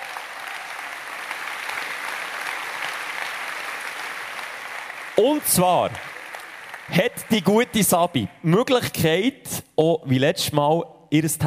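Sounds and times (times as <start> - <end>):
audience applause: 0.0 - 8.2
speech: 5.2 - 6.1, 6.9 - 11.4.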